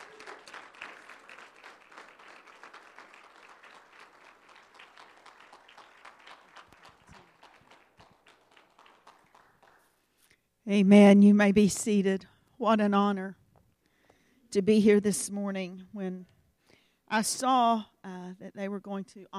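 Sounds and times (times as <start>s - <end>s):
church congregation clapping to welcome a visiting evangelist: 0.0s - 10.3s
speech: 10.7s - 13.4s, 14.5s - 16.4s, 17.1s - 19.3s.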